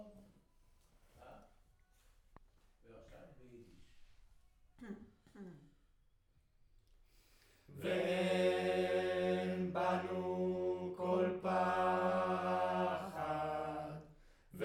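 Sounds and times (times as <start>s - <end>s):
choir singing in room: 7.7s - 14.6s.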